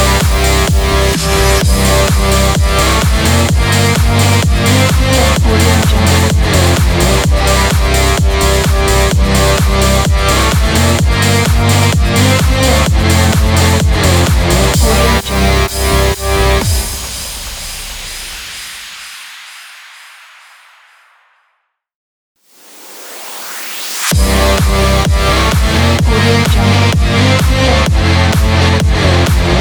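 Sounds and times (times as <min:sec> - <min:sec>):
energetic rock music: 0:00.0 - 0:17.1, 0:24.1 - 0:29.5.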